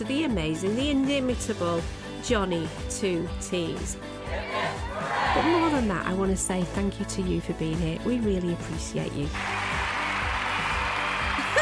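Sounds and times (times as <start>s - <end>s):
speech: 0.0s - 9.6s
cheering: 4.3s - 5.8s, 9.4s - 11.6s.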